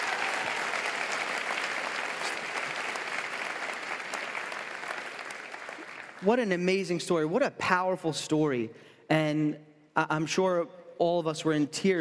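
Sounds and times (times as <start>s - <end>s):
audience round of applause: 0.0s - 6.4s
speech: 6.2s - 11.9s.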